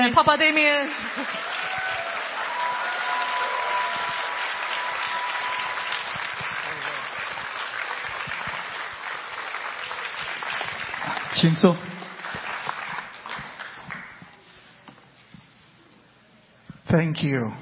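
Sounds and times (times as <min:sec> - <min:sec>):
speech: 0:00.0 - 0:01.4, 0:11.4 - 0:11.9, 0:17.0 - 0:17.6
standing church congregation applauding to welcome its pastor: 0:00.3 - 0:14.4.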